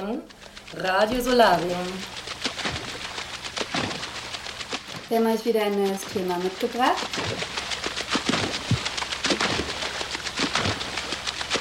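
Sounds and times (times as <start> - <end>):
water splashing: 0.0 - 11.5
speech: 0.1 - 2.2, 5.1 - 7.5.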